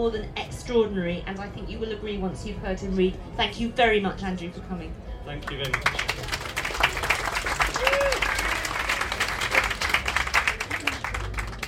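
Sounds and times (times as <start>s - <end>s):
speech: 0.0s - 6.4s
audience applause: 5.5s - 11.6s.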